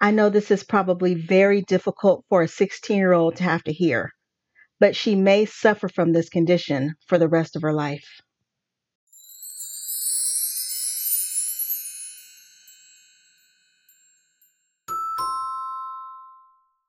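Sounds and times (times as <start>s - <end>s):
speech: 0.0s - 4.2s, 4.8s - 8.2s
doorbell chime: 9.1s - 16.8s.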